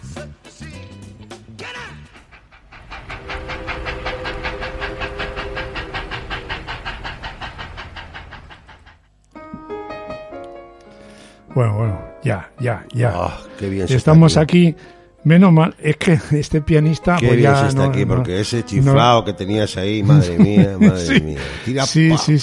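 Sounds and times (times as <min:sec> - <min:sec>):
speech: 0:00.2 - 0:00.8, 0:11.6 - 0:22.4
train sound effect clickety-clack used as a transition: 0:01.6 - 0:09.0
sustained tonal hum: 0:02.2 - 0:08.9
laughter: 0:19.9 - 0:22.4.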